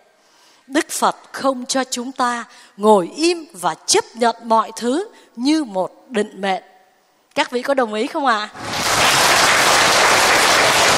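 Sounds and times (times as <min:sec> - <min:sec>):
speech: 0:00.7 - 0:06.7, 0:07.4 - 0:08.7
audience applause at a Buddhist dharma talk: 0:08.6 - 0:10.9.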